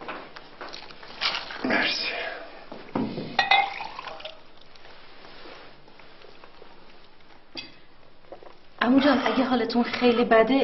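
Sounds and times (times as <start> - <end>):
water poured into a glass: 3.4 - 4.7
speech: 8.9 - 10.6.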